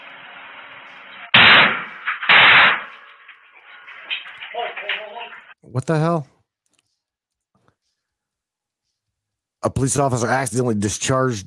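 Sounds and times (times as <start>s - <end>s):
faint debris noise: 0.0s - 5.6s
explosive breach of a hotel room door: 1.3s - 3.3s
speech: 4.6s - 6.3s, 9.8s - 11.4s.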